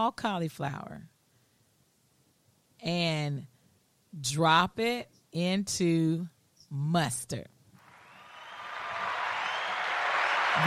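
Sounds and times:
speech: 0.0 - 1.1, 2.8 - 3.5, 4.1 - 7.6
applause sound effect button: 7.8 - 10.6.

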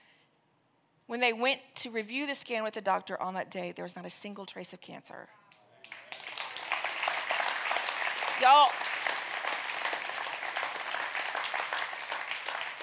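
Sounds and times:
speech: 1.1 - 5.4, 8.4 - 8.8
audience giving a polite golf clap: 5.5 - 12.8.

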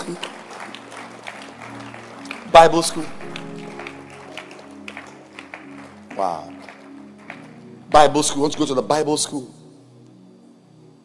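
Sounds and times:
audience clapping: 0.0 - 8.8
speech: 0.1 - 0.3, 2.6 - 3.2, 6.2 - 6.6, 7.9 - 9.6.

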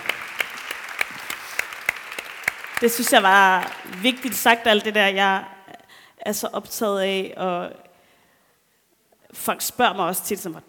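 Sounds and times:
applause: 0.0 - 5.0
speech: 2.8 - 5.5, 6.2 - 7.8, 9.4 - 10.6.

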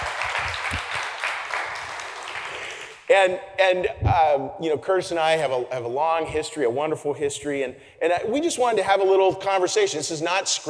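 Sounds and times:
audience applause: 0.0 - 3.0
speech: 3.1 - 10.6.

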